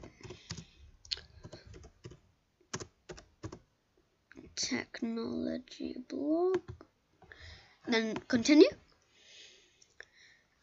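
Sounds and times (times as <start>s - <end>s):
typing on a computer keyboard: 0.0s - 3.6s
speech: 4.6s - 6.8s, 7.9s - 8.8s.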